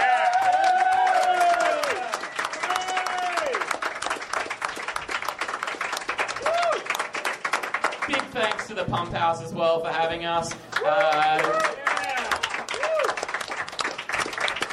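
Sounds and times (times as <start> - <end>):
audience applause: 0.0 - 9.4, 10.0 - 14.7
speech: 8.8 - 11.8.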